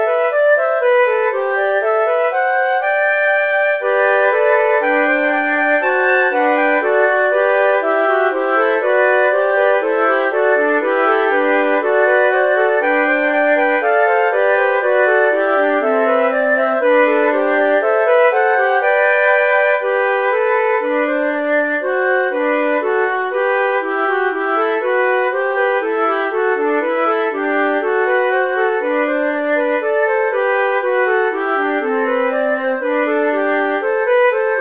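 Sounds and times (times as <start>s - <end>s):
three flutes playing a short fugue: 0.0s - 34.5s.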